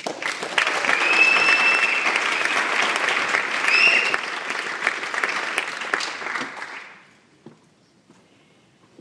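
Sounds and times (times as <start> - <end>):
audience applause: 0.0 - 7.1.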